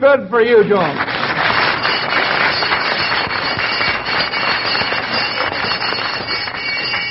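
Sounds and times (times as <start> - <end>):
speech: 0.1 - 1.1
school recess bell ringing: 1.4 - 7.0.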